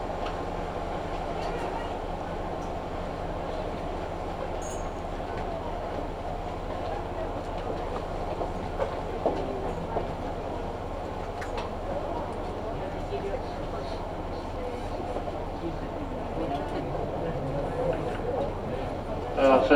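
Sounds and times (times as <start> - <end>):
Kyudai Main Line train running from Tanushimaru toward Kurume: 0.0 - 19.7
low constant hum: 11.3 - 19.7
murmured voices: 11.7 - 19.7.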